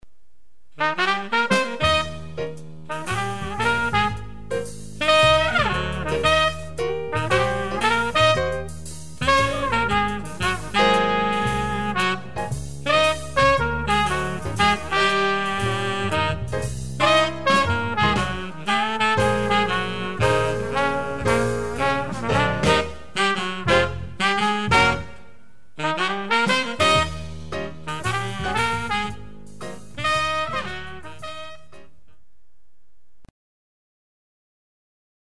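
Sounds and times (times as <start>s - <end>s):
dixieland trumpet: 0.8s - 32.0s.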